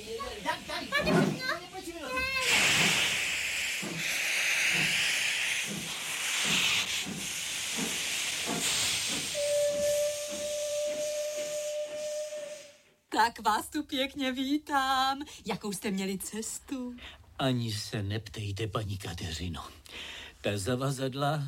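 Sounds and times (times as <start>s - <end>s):
steam locomotive hissing: 0.0s - 12.9s
steady whistle-like tone: 9.3s - 12.9s
speech: 13.3s - 21.4s.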